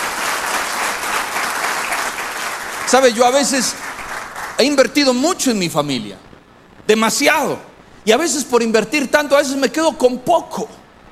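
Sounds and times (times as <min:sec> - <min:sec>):
church congregation applauding during a sermon: 0:00.0 - 0:05.6
speech: 0:02.9 - 0:03.9, 0:04.6 - 0:06.3, 0:06.9 - 0:10.8.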